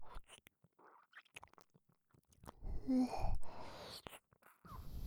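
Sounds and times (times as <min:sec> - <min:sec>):
person whispering: 0:02.8 - 0:05.0.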